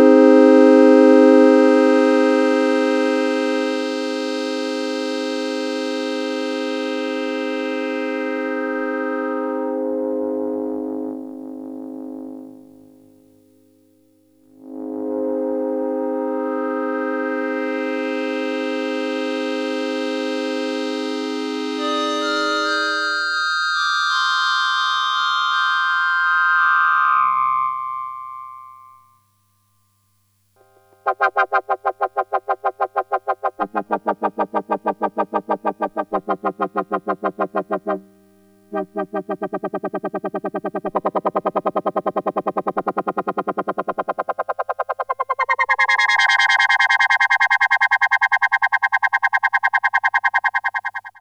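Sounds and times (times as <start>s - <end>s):
Casio MT 400V organ filter sweep and wah: 0.2s - 10.0s, 14.9s - 29.0s, 31.0s - 51.1s.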